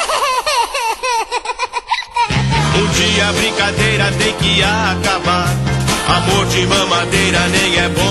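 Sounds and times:
baby giggling and babbling: 0.0 - 2.6
speech: 3.2 - 8.0.

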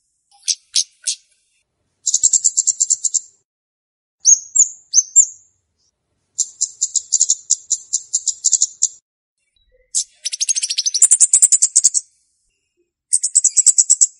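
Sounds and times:
flowerpecker lure song with high buzzy ticking trills: 0.0 - 1.3, 2.0 - 3.3, 6.4 - 9.0, 9.7 - 12.1, 13.1 - 14.1.

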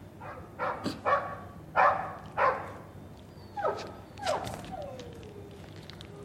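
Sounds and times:
dog barking: 0.2 - 2.8, 3.6 - 5.0.

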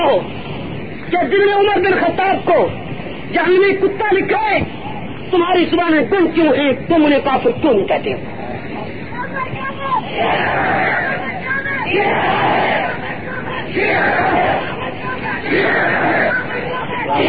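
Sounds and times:
speech: 0.1 - 0.5, 1.1 - 8.4, 10.1 - 11.1, 11.9 - 13.0, 13.7 - 14.8, 15.4 - 16.4, 17.1 - 17.2
large crowd chanting slogans at a religious rally: 9.4 - 17.2.

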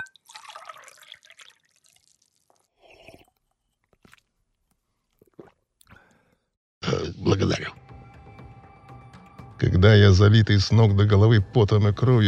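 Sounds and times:
water being poured: 0.0 - 4.4, 5.1 - 6.0
speech: 7.0 - 7.8, 9.8 - 12.2.

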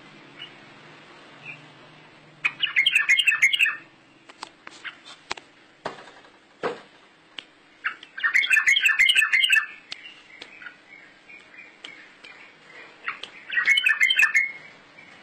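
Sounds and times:
bird twittering: 2.4 - 3.9, 7.8 - 15.2.

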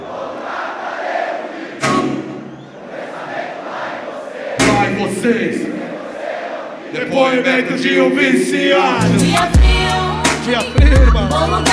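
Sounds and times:
concert crowd singing along: 0.0 - 11.7
sharp thumping hits: 4.6 - 5.0
speech: 5.0 - 5.7, 6.9 - 9.6, 10.4 - 11.7.

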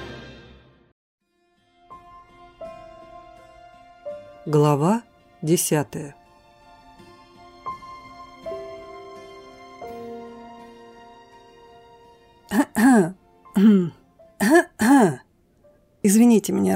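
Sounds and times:
speech: 4.4 - 6.2
polite throat-clearing cough: 12.5 - 15.2.

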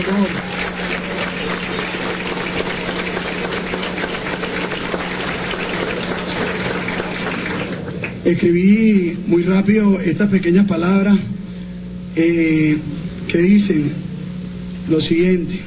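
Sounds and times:
speech: 0.0 - 0.6, 8.3 - 11.4, 12.2 - 14.0, 14.9 - 15.6
audience applause: 0.0 - 8.2.

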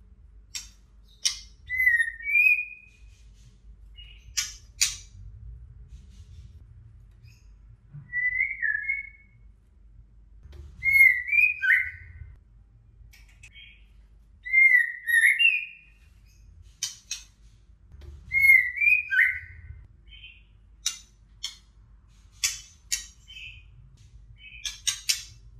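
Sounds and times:
female white-rumped shama whistled song: 0.6 - 3.2, 8.0 - 9.4, 10.8 - 12.4, 14.4 - 17.2, 18.3 - 21.6, 22.5 - 23.7, 24.4 - 25.4.

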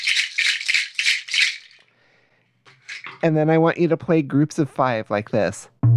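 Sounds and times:
rattle shaking: 0.0 - 1.9, 2.7 - 3.2
speech: 3.2 - 5.8.

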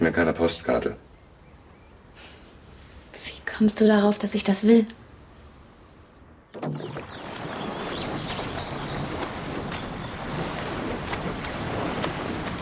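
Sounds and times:
speech: 0.0 - 1.1, 3.6 - 5.0
wind: 0.0 - 12.6
oars of a rowing crew striking water at a steady stroke rate: 6.5 - 12.6.

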